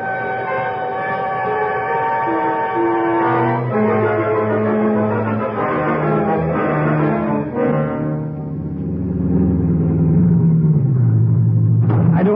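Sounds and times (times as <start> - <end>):
train horn: 0.0 - 8.5
train pulling out engine rumble: 0.0 - 12.3.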